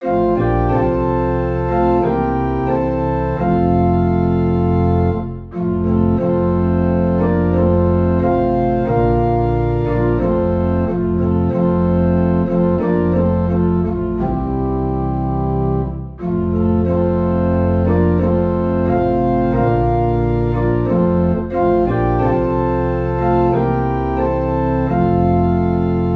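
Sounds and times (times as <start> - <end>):
low organ tone in F: 0.0 - 26.1.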